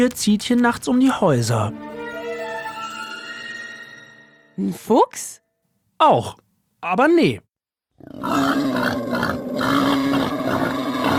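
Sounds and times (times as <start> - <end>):
speech: 0.0 - 1.9, 4.6 - 5.4, 6.0 - 10.9
wild boar grunting: 8.0 - 11.1.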